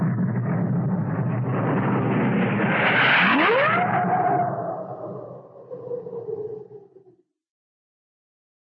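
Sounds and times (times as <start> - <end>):
large passenger jet taking off, cartoon style: 0.1 - 6.9.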